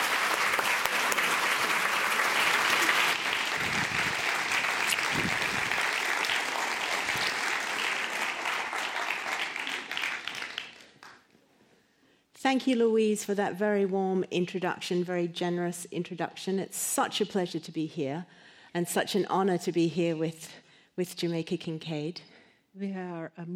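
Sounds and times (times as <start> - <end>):
audience applause greeting two authors at the Los Angeles Public Library: 0.0 - 11.2
speech: 12.5 - 23.5.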